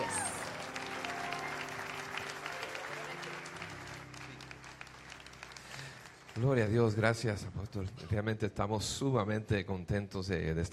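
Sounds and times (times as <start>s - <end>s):
loud applause: 0.0s - 7.0s
speech: 6.4s - 10.7s.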